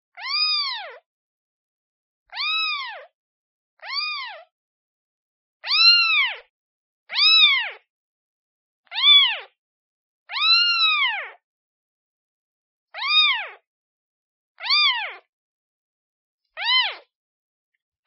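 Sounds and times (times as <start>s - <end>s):
kitten meowing: 0.1s - 1.0s, 2.3s - 3.1s, 3.8s - 4.5s, 5.6s - 6.5s, 7.1s - 7.9s, 8.9s - 9.6s, 10.3s - 11.4s, 13.0s - 13.6s, 14.6s - 15.3s, 16.6s - 17.1s.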